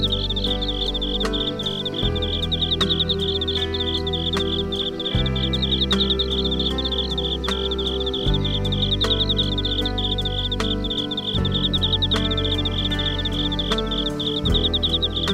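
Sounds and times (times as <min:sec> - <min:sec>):
insects: 0:00.0 - 0:15.3
smooth guitar: 0:00.0 - 0:15.3.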